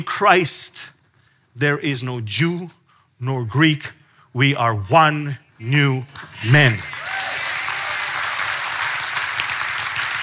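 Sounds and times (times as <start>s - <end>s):
speech: 0.0s - 0.9s, 1.6s - 6.9s
audience clapping: 6.1s - 10.2s.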